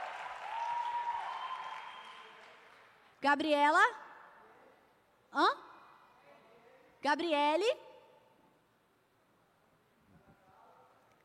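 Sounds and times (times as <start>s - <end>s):
round of applause: 0.0s - 3.2s
speech: 3.2s - 4.0s, 5.3s - 5.6s, 7.0s - 7.8s.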